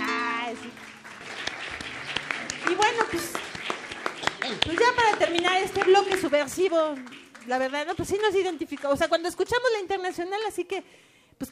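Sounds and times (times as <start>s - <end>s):
audience applause: 0.4s - 9.0s
speech: 4.6s - 11.5s.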